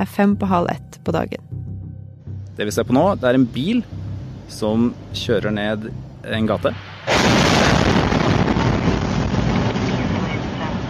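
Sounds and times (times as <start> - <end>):
speech: 0.0 - 1.6, 2.6 - 7.4
rocket explosion striking street ahead of car: 6.7 - 10.8
loud sustained rumbling roar: 6.8 - 10.8.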